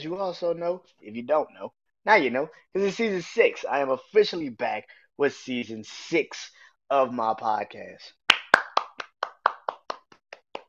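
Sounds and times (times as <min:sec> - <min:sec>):
speech: 0:00.0 - 0:08.2
one person clapping hands: 0:08.3 - 0:10.6.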